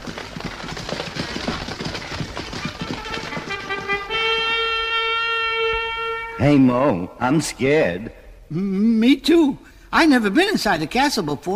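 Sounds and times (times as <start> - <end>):
horse-drawn carriage hooves clip-clopping: 0.0 - 6.2
speech: 6.4 - 11.5.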